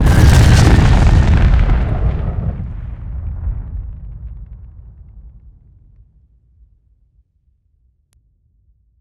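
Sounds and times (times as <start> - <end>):
explosion: 0.0 - 5.3.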